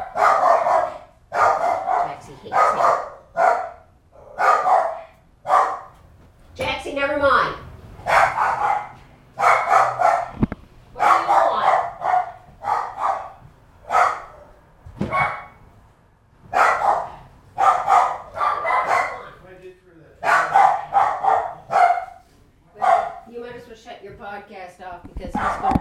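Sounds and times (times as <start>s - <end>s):
dog barking: 0.0s - 6.0s, 8.0s - 10.4s, 11.0s - 15.6s, 16.5s - 19.4s, 20.2s - 23.3s, 25.4s - 25.7s.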